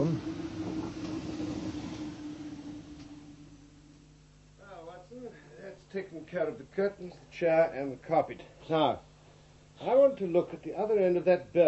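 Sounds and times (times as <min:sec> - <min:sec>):
train rumbling: 0:00.0 - 0:04.1
sustained tonal whine of a train: 0:00.0 - 0:06.8
speech: 0:06.0 - 0:09.1, 0:09.8 - 0:11.6.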